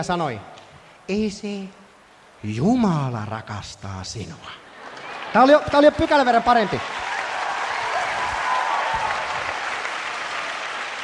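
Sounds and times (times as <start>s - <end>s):
speech: 0.0s - 0.5s, 1.1s - 1.8s, 2.4s - 4.6s, 5.3s - 7.0s
audience applause: 4.8s - 11.0s.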